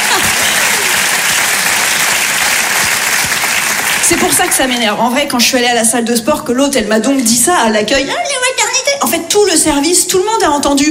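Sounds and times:
audience applause: 0.0 - 4.8
speech: 4.1 - 10.8.

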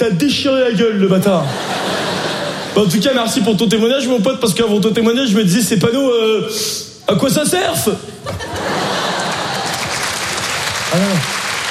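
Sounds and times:
speech: 0.0 - 1.8, 2.8 - 8.5
audience laughter: 1.4 - 3.1, 8.2 - 10.9
audience applause at a live comedy evening show: 8.7 - 11.7.

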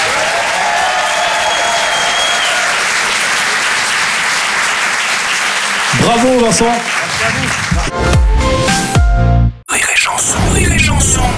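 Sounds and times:
comedy club audience applauding: 0.0 - 8.9
speech: 6.1 - 8.9, 10.1 - 11.3.

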